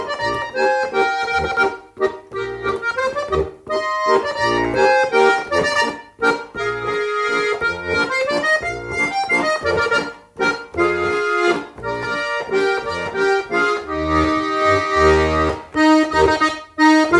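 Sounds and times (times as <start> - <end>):
waltz music: 0.0 - 17.1.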